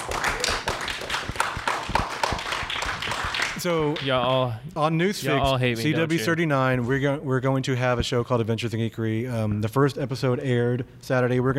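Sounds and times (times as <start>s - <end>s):
audience clapping: 0.0s - 4.4s
speech: 3.6s - 11.5s.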